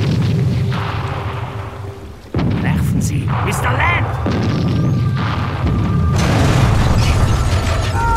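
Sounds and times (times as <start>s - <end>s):
ship's cannon firing: 0.0s - 8.0s
speech: 3.3s - 5.4s.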